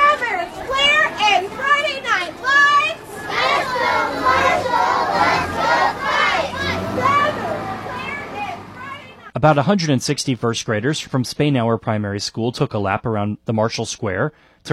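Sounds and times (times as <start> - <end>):
schoolchildren chanting slogans while marching: 0.6 - 9.3
speech: 9.4 - 14.7.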